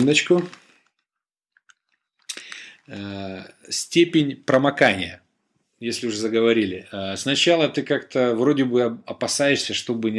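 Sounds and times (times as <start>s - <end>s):
speech: 0.0s - 0.6s, 2.9s - 5.2s, 5.8s - 10.1s
person sipping water: 1.5s - 2.9s.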